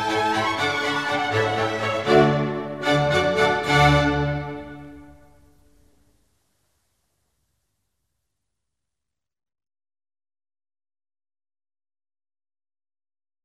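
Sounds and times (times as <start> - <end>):
horn concerto: 0.0 - 5.6.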